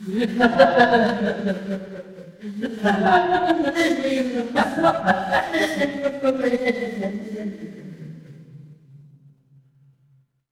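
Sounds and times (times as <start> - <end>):
crowd laughing: 0.1 - 8.0.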